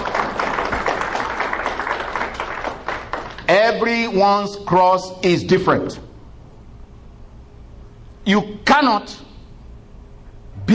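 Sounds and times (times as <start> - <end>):
audience hand clapping: 0.0 - 3.5
speech: 3.7 - 6.1, 8.3 - 9.2.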